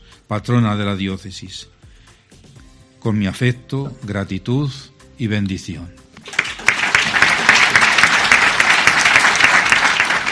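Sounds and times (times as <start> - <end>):
speech: 0.3 - 1.8, 3.0 - 6.0
prolonged applause from the clergy of Albacete: 6.2 - 10.3.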